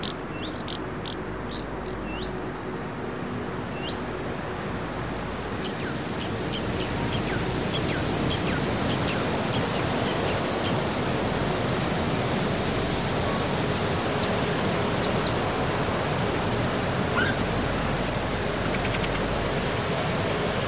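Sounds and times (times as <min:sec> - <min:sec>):
forest ambience in Norway: 0:00.0 - 0:20.6.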